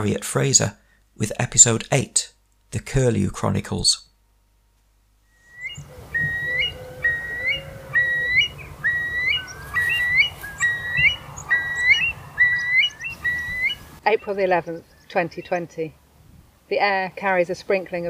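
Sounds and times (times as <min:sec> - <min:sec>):
speech: 0:00.0 - 0:04.1, 0:14.1 - 0:16.0, 0:16.7 - 0:18.0
larks singing: 0:05.3 - 0:15.9.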